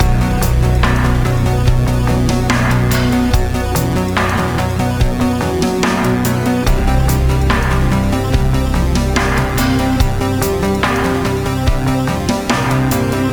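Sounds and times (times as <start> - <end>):
level map music: 0.0 - 13.3.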